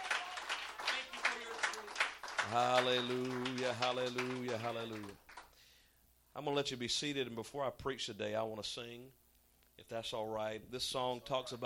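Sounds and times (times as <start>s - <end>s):
audience applause: 0.0s - 5.5s
speech: 2.5s - 5.2s, 6.4s - 9.2s, 9.8s - 11.6s.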